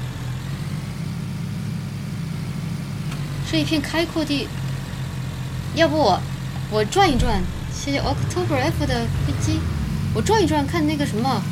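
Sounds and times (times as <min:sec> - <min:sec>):
car engine idling in game: 0:00.0 - 0:11.5
speech: 0:03.5 - 0:04.6, 0:05.8 - 0:11.5.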